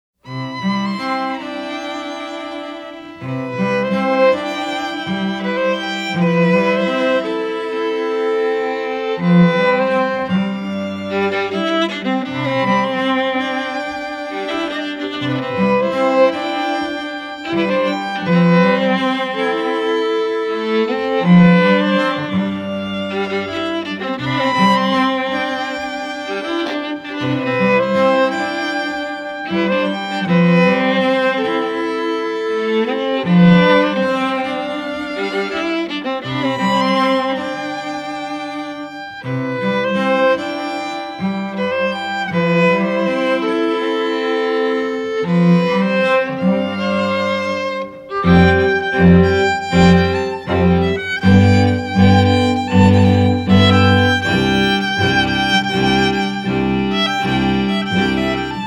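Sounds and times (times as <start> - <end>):
string trio playing: 0.2 - 58.6.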